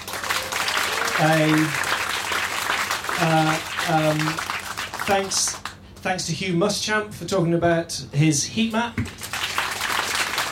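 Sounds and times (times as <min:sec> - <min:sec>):
audience applause after an interview at an event with music: 0:00.0 - 0:05.8, 0:09.1 - 0:10.4
speech: 0:01.2 - 0:01.8, 0:03.2 - 0:04.5, 0:05.1 - 0:09.2.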